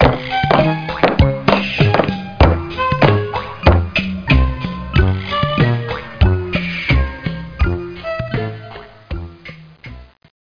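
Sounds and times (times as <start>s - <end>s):
march music: 0.0s - 8.4s.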